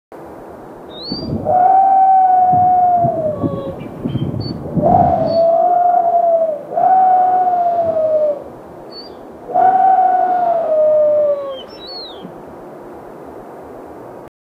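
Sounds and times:
whale sounds: 0:01.1 - 0:03.8, 0:04.4 - 0:12.4.

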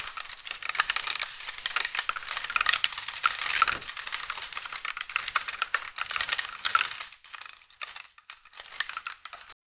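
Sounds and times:
foley material sounds: 0:00.0 - 0:09.6.

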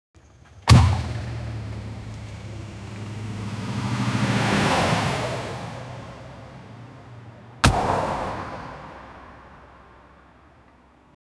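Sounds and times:
sudden jarring impact of two vehicles colliding: 0:00.4 - 0:11.1.

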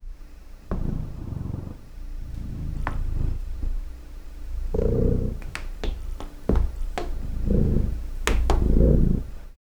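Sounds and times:
cat sneaking in kitchen: 0:00.6 - 0:09.6.

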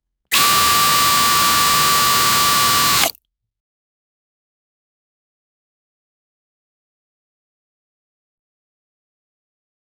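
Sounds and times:
short powerful vacuum: 0:00.3 - 0:03.1.

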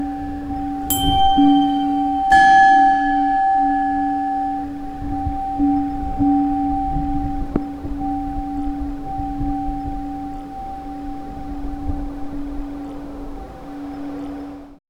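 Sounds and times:
Kremlin chimes: 0:00.0 - 0:14.6.

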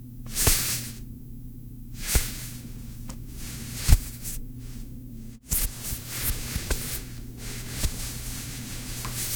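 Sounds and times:
close ASMR of hands on textures: 0:00.3 - 0:01.0, 0:02.0 - 0:04.9, 0:05.4 - 0:09.3.

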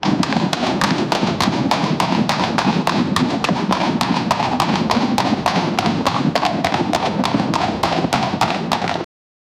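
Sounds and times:
army soldiers marching: 0:00.0 - 0:09.1.

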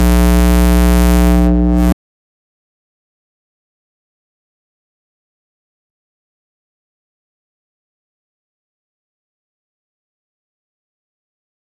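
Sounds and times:
cosmic electromagnetic noise: 0:00.0 - 0:02.0.

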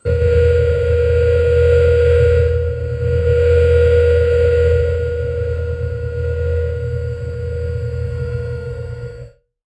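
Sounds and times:
dense mechanical whir of a machine powering on: 0:00.0 - 0:09.4.

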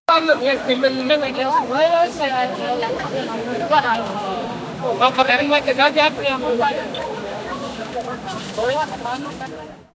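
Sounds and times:
town market ambience: 0:00.1 - 0:09.9.

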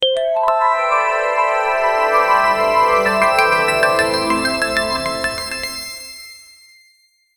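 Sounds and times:
outro jingle: 0:01.0 - 0:06.5.

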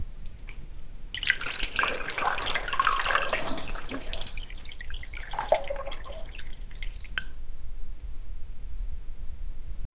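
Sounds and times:
water moving: 0:00.3 - 0:07.5.

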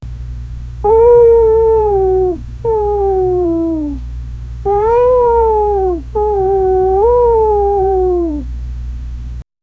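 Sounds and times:
gentle soothing cat: 0:00.8 - 0:04.0, 0:04.7 - 0:08.5.

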